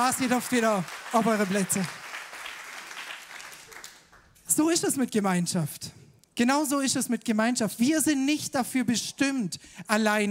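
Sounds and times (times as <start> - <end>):
speech: 0.0 - 2.0, 4.6 - 10.2
audience applause: 0.0 - 4.2.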